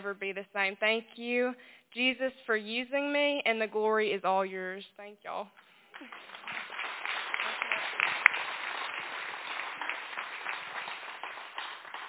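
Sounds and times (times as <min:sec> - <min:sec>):
speech: 0:00.0 - 0:06.5
audience applause: 0:06.0 - 0:12.0.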